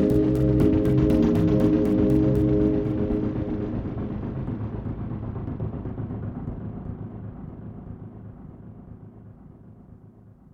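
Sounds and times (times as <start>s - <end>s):
deep groove music: 0.0s - 8.1s.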